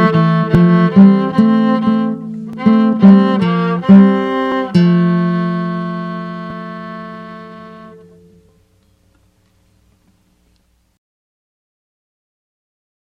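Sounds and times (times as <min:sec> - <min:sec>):
guitar: 0:00.0 - 0:10.2.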